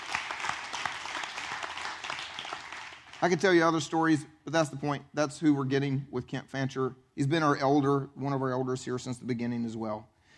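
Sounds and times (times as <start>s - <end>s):
audience cheering: 0.0s - 3.4s
speech: 3.2s - 10.1s.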